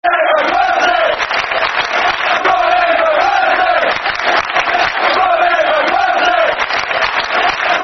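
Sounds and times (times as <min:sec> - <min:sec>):
football chant: 0:00.0 - 0:07.8.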